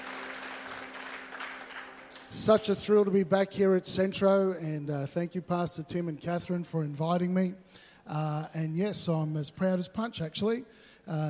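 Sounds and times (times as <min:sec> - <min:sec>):
audience applause: 0:00.0 - 0:02.8
speech: 0:02.3 - 0:11.2.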